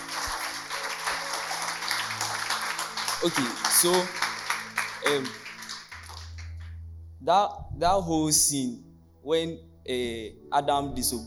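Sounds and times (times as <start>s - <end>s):
crowd clapping: 0.0s - 6.7s
speech: 3.2s - 4.2s, 5.0s - 5.4s, 7.2s - 11.2s.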